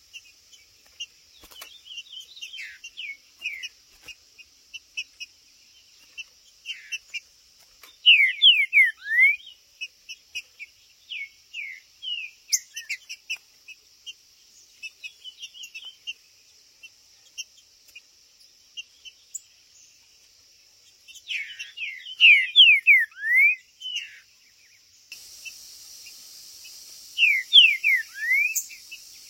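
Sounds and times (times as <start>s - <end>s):
green-winged saltator whistling song: 8.0s - 9.5s, 21.3s - 24.2s, 25.4s - 29.2s.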